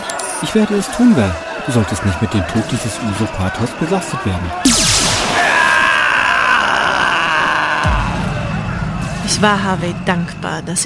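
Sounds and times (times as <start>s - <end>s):
speech: 0.4s - 4.9s, 9.3s - 10.8s
sharp burst: 4.7s - 6.7s
shot man screaming as he falls: 5.2s - 8.2s.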